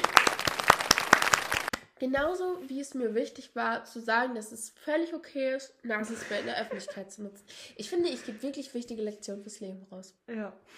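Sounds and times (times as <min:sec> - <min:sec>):
audience clapping: 0:00.0 - 0:01.8
speech: 0:02.0 - 0:10.7
laughter: 0:06.0 - 0:07.2.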